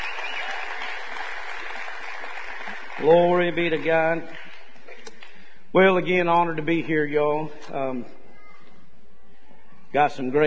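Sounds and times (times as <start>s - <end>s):
audience clapping for the band: 0.0s - 5.4s
speech: 3.0s - 4.4s, 5.7s - 8.2s, 9.9s - 10.4s.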